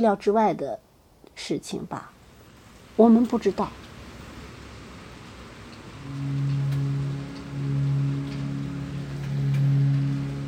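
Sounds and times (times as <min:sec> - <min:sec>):
speech: 0:00.0 - 0:00.8, 0:01.4 - 0:02.2, 0:03.0 - 0:03.9, 0:06.1 - 0:06.5
heavy rain: 0:02.2 - 0:10.4.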